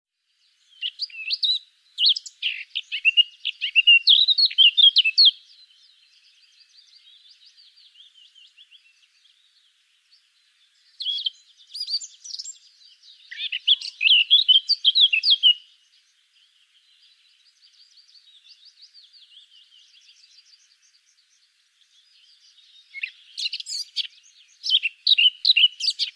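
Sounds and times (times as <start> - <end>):
Eurasian blackcap singing: 0.2 - 26.1.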